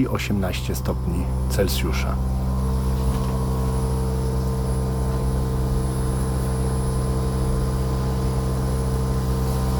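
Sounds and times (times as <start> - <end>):
speech: 0.0 - 2.5
air conditioner running at top fan speed: 0.0 - 9.7.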